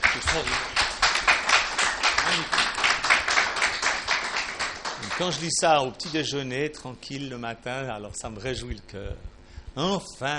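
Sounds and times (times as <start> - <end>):
audience applause: 0.0 - 5.5
speech: 0.2 - 0.8, 5.2 - 10.3.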